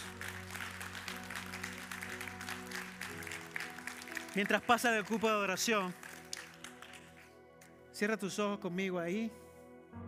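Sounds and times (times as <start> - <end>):
audience applause: 0.0 - 7.3
speech: 4.4 - 6.0, 8.0 - 9.4.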